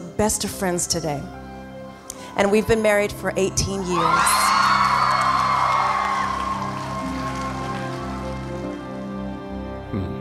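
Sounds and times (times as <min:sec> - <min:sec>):
speech: 0:00.2 - 0:01.4, 0:02.4 - 0:04.6
crowd whooping: 0:04.0 - 0:08.8
crowd applauding: 0:04.0 - 0:09.5.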